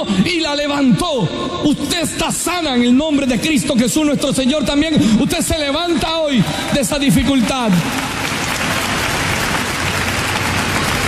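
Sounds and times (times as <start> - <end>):
speech: 0.0 - 8.2
audience applauding: 7.1 - 11.0.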